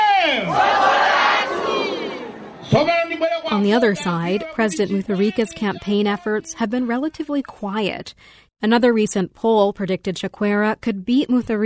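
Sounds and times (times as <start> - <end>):
crowd of campaign supporters cheering and ululating: 0.0 - 3.3
speech: 3.5 - 11.6.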